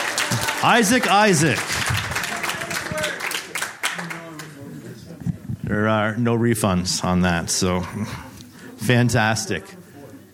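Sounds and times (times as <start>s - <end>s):
audience applause: 0.0s - 4.6s
speech: 0.6s - 1.8s, 5.7s - 9.8s.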